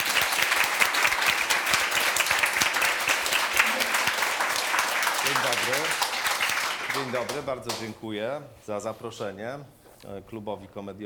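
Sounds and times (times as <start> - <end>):
audience applause: 0.0 - 7.4
speech: 5.5 - 6.0, 7.0 - 11.0.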